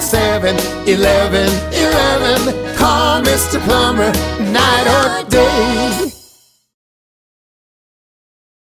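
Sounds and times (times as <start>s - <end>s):
jingle: 0.0s - 6.8s.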